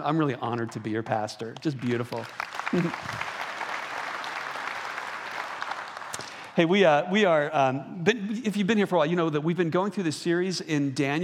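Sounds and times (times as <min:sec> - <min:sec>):
speech: 0:00.0 - 0:03.3, 0:06.6 - 0:11.2
church audience applauding: 0:01.6 - 0:06.6.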